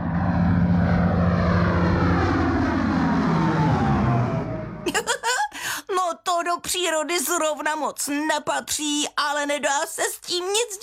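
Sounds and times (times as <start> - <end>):
airplane flying over a meadow where sheep graze: 0.0 - 5.0
speech: 6.4 - 10.8.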